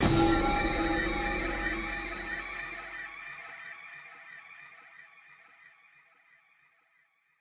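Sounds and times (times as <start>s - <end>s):
percussion stinger: 0.0s - 3.5s.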